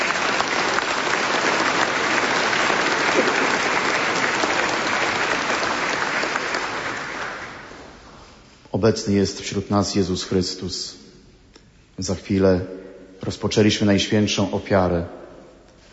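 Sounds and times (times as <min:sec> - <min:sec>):
applause from church audience: 0:00.0 - 0:08.0
speech: 0:08.8 - 0:11.0, 0:12.0 - 0:15.2.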